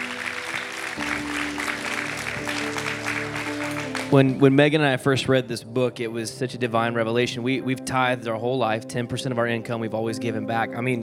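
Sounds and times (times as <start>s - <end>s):
audience applause hand clapping: 0.0s - 4.5s
speech: 4.1s - 11.0s.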